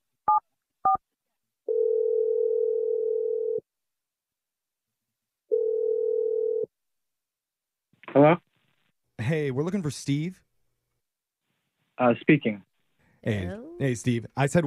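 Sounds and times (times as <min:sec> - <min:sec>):
steady telephone tones: 0:01.7 - 0:03.6, 0:05.5 - 0:06.7
speech: 0:08.2 - 0:08.4, 0:09.3 - 0:10.5, 0:12.0 - 0:14.6.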